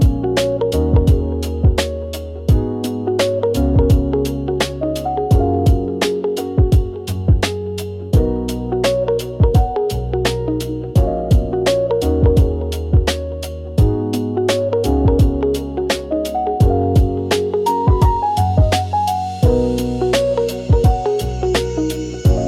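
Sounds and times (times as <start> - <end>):
dreamy floating relaxing lofi music: 0.0 - 22.4.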